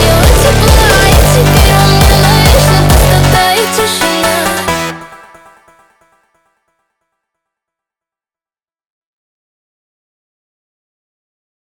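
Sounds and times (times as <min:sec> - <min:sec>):
Russian funk music: 0:00.0 - 0:05.7.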